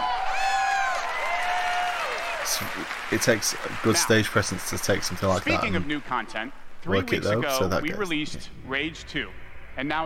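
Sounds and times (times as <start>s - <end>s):
audience clapping: 0.0s - 5.6s
speech: 2.6s - 10.0s.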